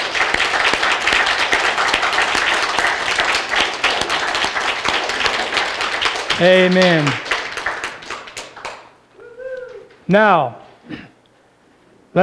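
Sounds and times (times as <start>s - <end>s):
audience applause for veterans: 0.0s - 9.0s
speech: 6.4s - 7.2s, 10.1s - 11.0s.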